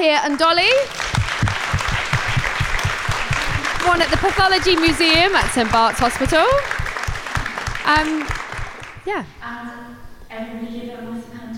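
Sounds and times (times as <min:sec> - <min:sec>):
speech: 0:00.0 - 0:01.0, 0:03.8 - 0:06.8, 0:07.9 - 0:08.4, 0:09.0 - 0:11.0
audience applauding: 0:00.3 - 0:09.1.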